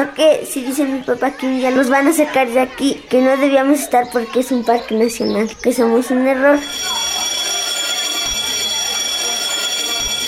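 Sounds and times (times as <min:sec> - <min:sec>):
speech: 0:00.0 - 0:07.2
school bell ringing: 0:06.6 - 0:10.2.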